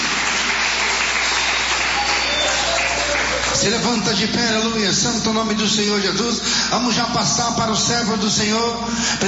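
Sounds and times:
audience applause: 0.0 - 3.8
speech: 3.6 - 9.2.

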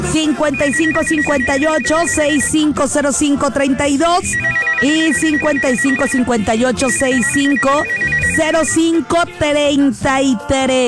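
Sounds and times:
speech: 0.2 - 10.8
telephone line ringing on a radio call-in show: 0.5 - 2.7, 4.2 - 8.8.

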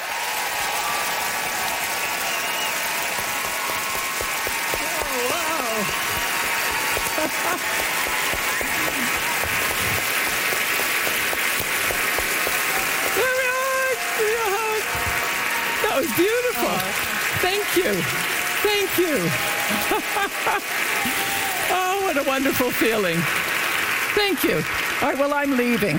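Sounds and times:
audience applause: 0.0 - 25.9
faint cheers and voices: 0.0 - 25.9
laughter: 4.8 - 10.0, 13.2 - 21.9
speech: 7.2 - 8.0, 16.2 - 23.5, 24.2 - 25.9.

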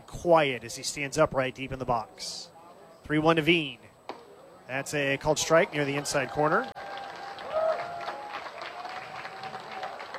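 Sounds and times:
speech: 0.2 - 2.5, 3.1 - 3.9, 4.7 - 6.7
baseball fans cheering: 4.8 - 10.1.

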